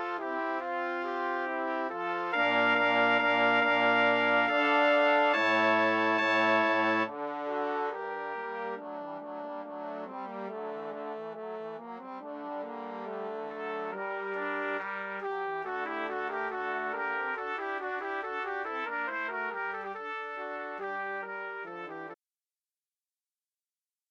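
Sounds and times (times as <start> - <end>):
brass quintet playing: 0.0 - 22.2.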